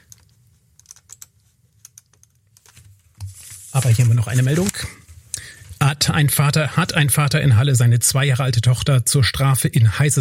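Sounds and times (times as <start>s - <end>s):
low hum: 0.0s - 10.1s
typing on a computer keyboard: 0.8s - 2.4s
speech: 3.8s - 4.9s, 6.0s - 10.1s.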